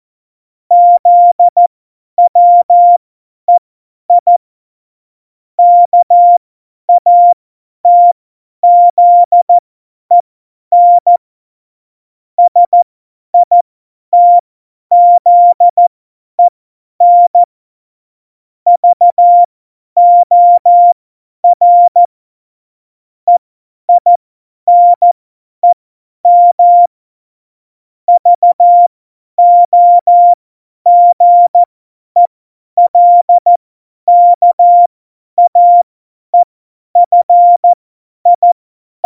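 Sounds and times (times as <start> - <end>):
CW Morse code beeps: 0.7 - 1.6, 2.3 - 3.0, 5.6 - 9.4, 10.1 - 11.2, 12.5 - 12.8, 14.2 - 15.8, 16.4 - 17.5, 18.8 - 22.1, 23.3 - 26.9, 28.1 - 39.0.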